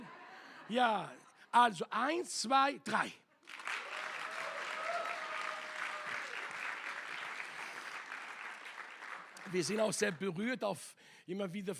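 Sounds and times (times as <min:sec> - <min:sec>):
speech: 0:00.7 - 0:03.6, 0:09.5 - 0:11.7
audience applause: 0:03.4 - 0:10.2.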